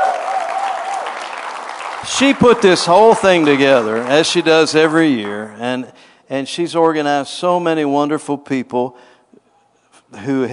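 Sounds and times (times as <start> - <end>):
audience hand clapping: 0.0 - 5.7
speech: 2.0 - 9.1, 10.1 - 10.5.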